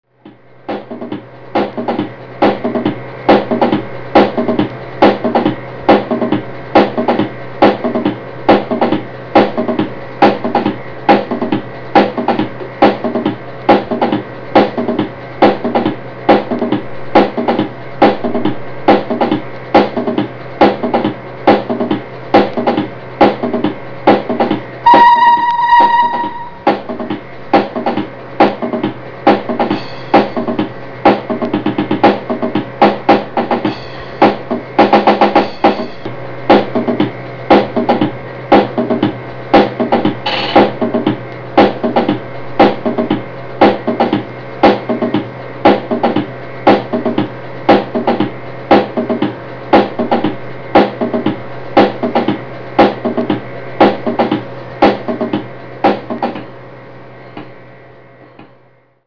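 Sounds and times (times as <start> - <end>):
drum kit: 0.2 - 56.6.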